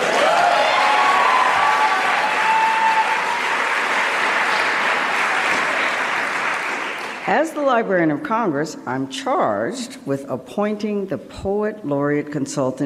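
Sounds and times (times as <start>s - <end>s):
faint whistles or cheers: 0.0s - 5.6s
audience applause: 0.0s - 7.3s
speech: 7.3s - 12.8s.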